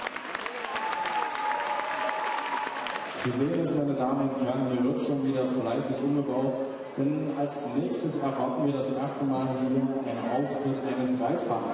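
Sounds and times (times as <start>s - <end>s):
audience applause: 0.0s - 3.6s
speech: 3.2s - 11.7s.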